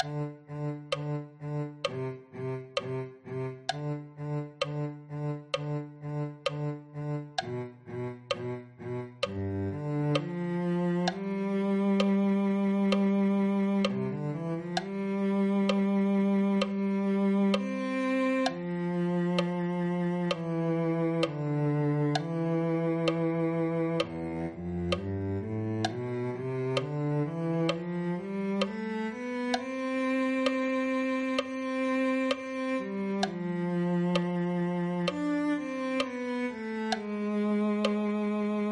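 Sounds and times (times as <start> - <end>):
cello: 0.0 - 38.6.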